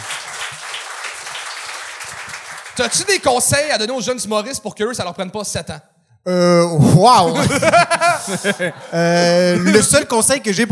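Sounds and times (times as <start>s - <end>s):
crowd applauding: 0.0s - 3.9s
speech: 2.8s - 10.7s
laughter: 6.9s - 10.5s.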